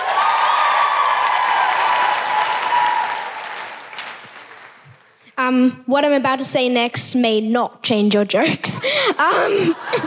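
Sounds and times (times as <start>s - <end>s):
audience applause: 0.0s - 5.1s
speech: 5.5s - 10.0s
laughter: 9.2s - 10.0s.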